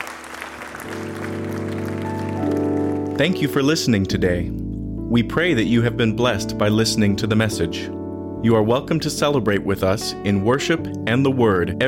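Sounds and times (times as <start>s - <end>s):
audience applauding: 0.0s - 3.6s
speech: 0.8s - 1.3s, 3.2s - 11.8s.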